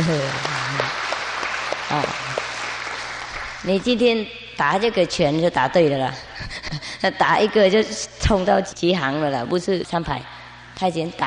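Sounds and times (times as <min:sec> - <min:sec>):
speech: 0:00.0 - 0:00.5, 0:03.6 - 0:11.2
audience applause: 0:00.0 - 0:03.7.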